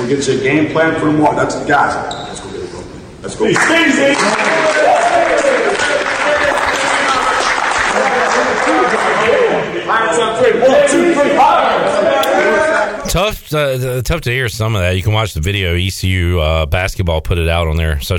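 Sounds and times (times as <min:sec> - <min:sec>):
speech: 0:00.1 - 0:02.6, 0:03.2 - 0:05.6, 0:08.4 - 0:18.1
team applauding: 0:03.6 - 0:09.6
excited shouting and voices: 0:03.7 - 0:09.6, 0:10.4 - 0:13.1.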